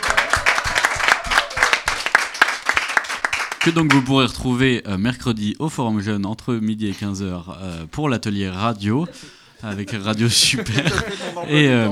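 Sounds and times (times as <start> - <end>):
audience applauding: 0.0 - 4.1
speech: 3.6 - 11.8
laughter: 8.5 - 11.8.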